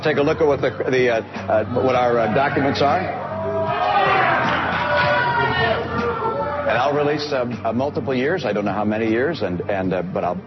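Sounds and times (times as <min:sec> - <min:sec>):
speech: 0:00.0 - 0:03.3, 0:06.7 - 0:10.4
large crowd booing: 0:02.1 - 0:06.8.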